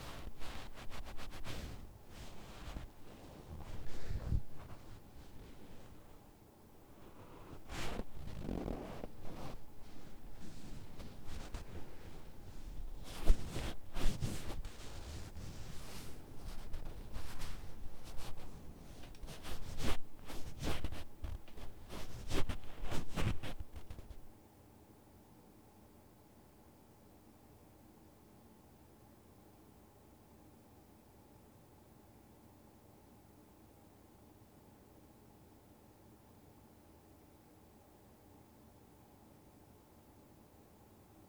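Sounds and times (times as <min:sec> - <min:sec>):
left ear cleaning ASMR: 0:00.0 - 0:24.3.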